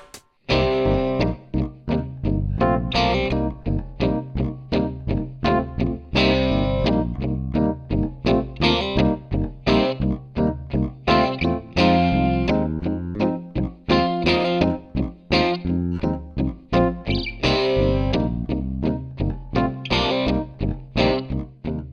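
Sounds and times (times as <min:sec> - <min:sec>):
bluesy rock music: 0:00.5 - 0:21.8.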